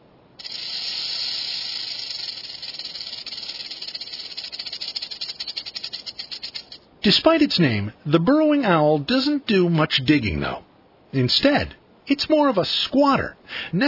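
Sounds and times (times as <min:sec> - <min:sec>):
rattlesnake rattling: 0:00.0 - 0:06.9
speech: 0:07.0 - 0:13.8.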